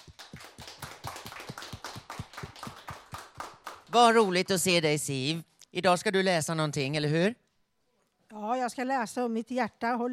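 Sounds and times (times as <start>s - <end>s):
small group clapping: 0.0s - 4.4s
speech: 3.9s - 7.4s, 8.4s - 10.1s.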